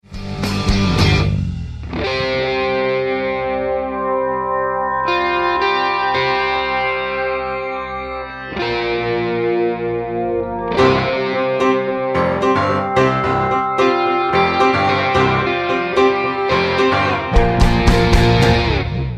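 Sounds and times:
solo guitar: 0:00.1 - 0:19.1.

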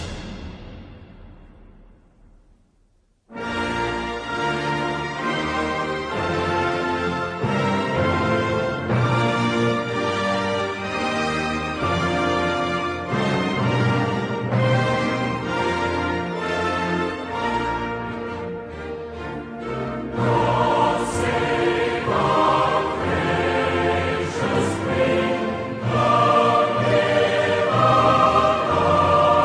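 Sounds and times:
national anthem: 0:03.3 - 0:29.4.

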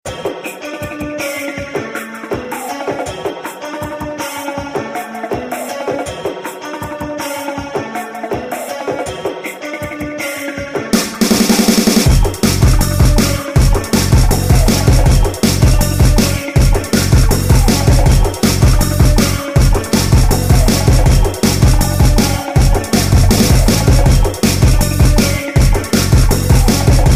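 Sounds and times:
breakbeat drums: 0:00.1 - 0:27.1.

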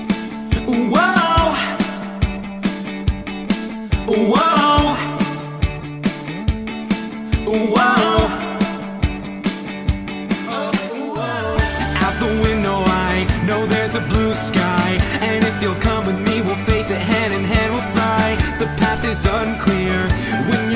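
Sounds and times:
vocals: 0:00.2 - 0:06.3, 0:06.9 - 0:20.7.

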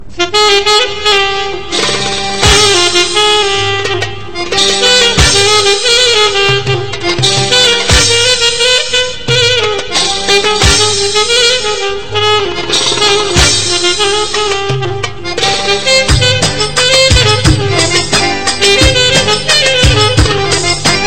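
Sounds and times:
Arabian music: 0:01.0 - 0:21.0.

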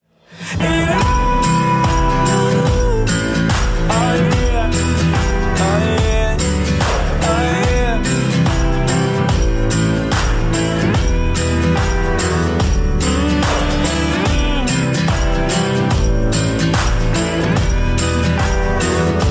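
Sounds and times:
acoustic music: 0:00.3 - 0:19.2.

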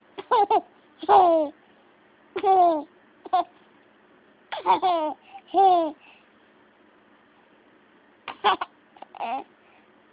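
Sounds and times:
baby giggling: 0:00.2 - 0:01.6, 0:02.4 - 0:03.6, 0:04.5 - 0:06.0, 0:08.3 - 0:09.5.

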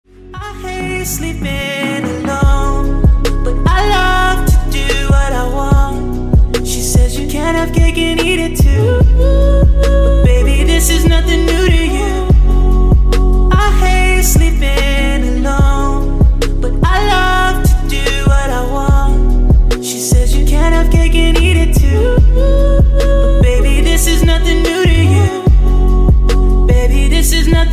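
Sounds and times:
inspirational music: 0:00.1 - 0:27.7.

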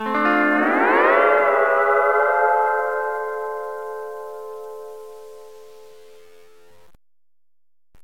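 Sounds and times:
Hawaiian SMS alert tone: 0:00.0 - 0:05.0.

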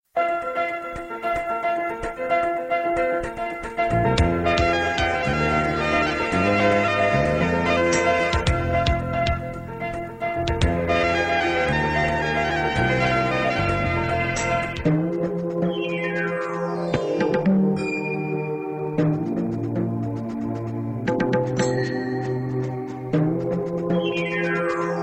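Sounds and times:
evergreen romantic music: 0:00.2 - 0:25.0.

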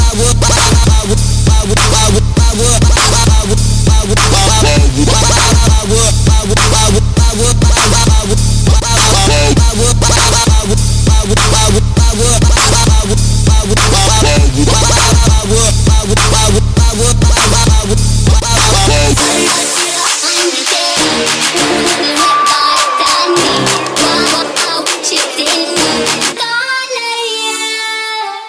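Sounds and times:
crunk music: 0:00.0 - 0:28.3.

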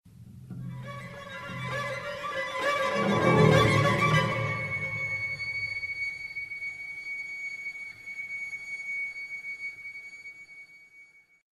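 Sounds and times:
scary tone: 0:00.8 - 0:05.6.

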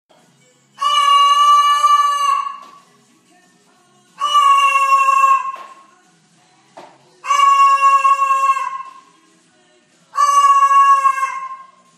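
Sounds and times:
cockatoo calling: 0:00.8 - 0:02.8, 0:04.2 - 0:05.8, 0:07.2 - 0:09.1, 0:10.1 - 0:11.9.

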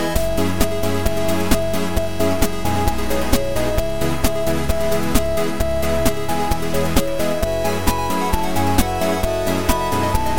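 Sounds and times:
8-bit music: 0:00.0 - 0:10.3.

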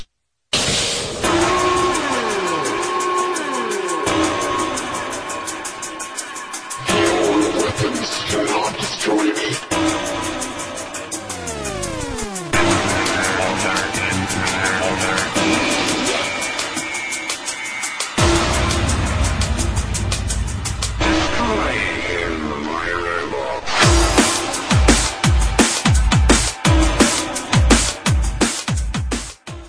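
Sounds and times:
drum and bass music: 0:00.6 - 0:29.6.

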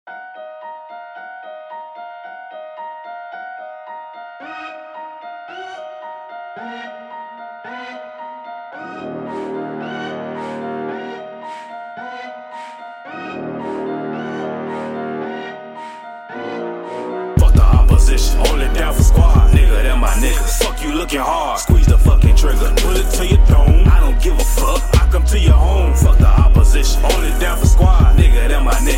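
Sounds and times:
hip hop ringtone: 0:17.4 - 0:28.9.

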